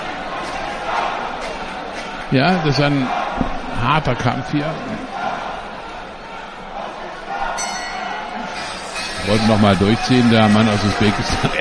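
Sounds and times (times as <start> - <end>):
speech: 2.3 - 5.2, 9.2 - 11.5
boxing bell ending the round: 7.6 - 10.8
laughter: 8.3 - 11.5.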